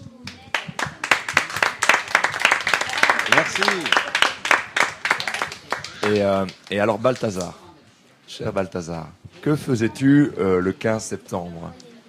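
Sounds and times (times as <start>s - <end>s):
audience applause: 0.5s - 7.3s
speech: 3.6s - 4.0s, 6.0s - 7.6s, 8.3s - 11.8s.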